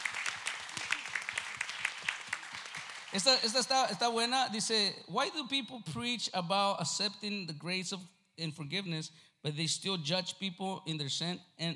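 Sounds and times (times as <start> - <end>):
audience applause at a question-and-answer session: 0.0 - 3.5
speech: 3.1 - 11.7.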